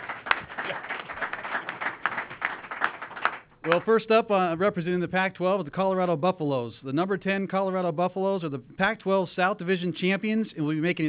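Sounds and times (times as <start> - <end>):
round of applause: 0.0 - 4.0
speech: 3.6 - 11.0.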